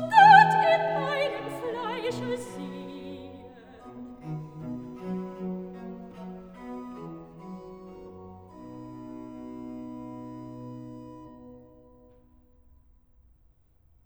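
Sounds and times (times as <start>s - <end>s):
soprano singing a cantata recitative: 0.0s - 4.3s.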